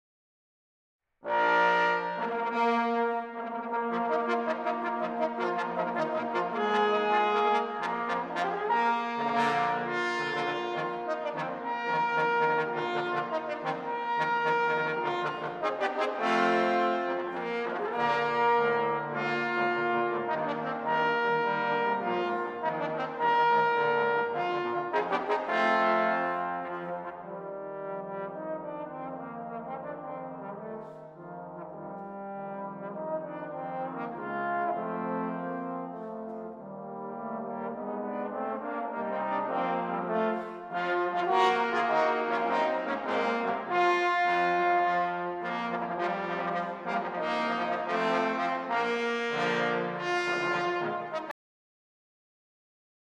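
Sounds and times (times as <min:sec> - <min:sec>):
trombone: 0:01.2 - 0:51.3.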